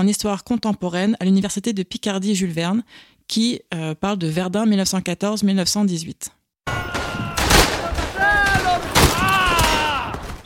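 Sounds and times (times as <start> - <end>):
speech: 0.0 - 6.4
voices shouting: 6.7 - 10.4
rifle shots: 7.0 - 10.4.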